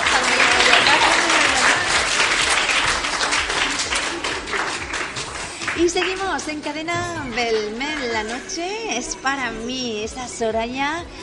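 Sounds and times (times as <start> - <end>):
audience applause: 0.0 - 8.5
speech: 5.8 - 11.2.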